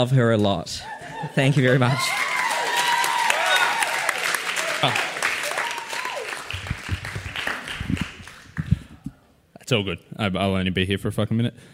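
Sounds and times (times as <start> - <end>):
speech: 0.0 - 2.2, 4.8 - 5.1, 9.7 - 11.7
audience applause: 1.4 - 8.9.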